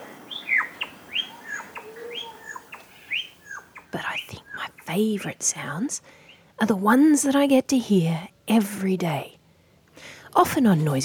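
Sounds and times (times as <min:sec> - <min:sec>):
lyrebird calls: 0:00.0 - 0:04.3
speech: 0:04.9 - 0:09.4, 0:10.3 - 0:11.0.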